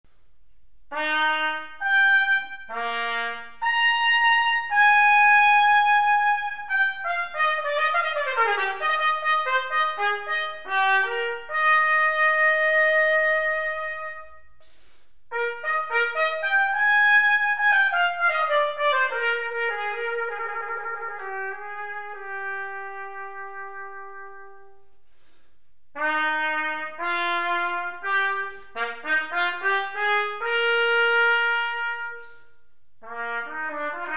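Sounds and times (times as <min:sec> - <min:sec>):
trumpet concerto: 0:00.9 - 0:34.1.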